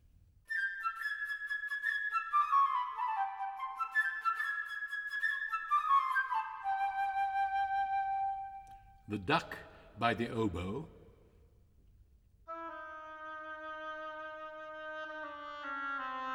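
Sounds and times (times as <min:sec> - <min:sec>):
flute playing a bright lilting melody: 0:00.5 - 0:09.1, 0:12.5 - 0:16.3
speech: 0:09.1 - 0:11.0.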